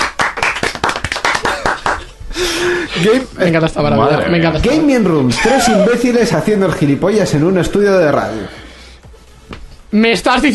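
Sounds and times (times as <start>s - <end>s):
loud rapid hand clapping: 0.0s - 2.1s
laughter: 1.3s - 2.1s, 5.3s - 6.4s
speech: 3.0s - 8.6s, 9.9s - 10.5s.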